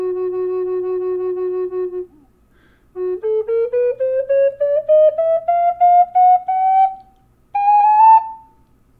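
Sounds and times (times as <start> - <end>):
flute playing F sharp: 0.0 - 2.4, 3.0 - 8.6.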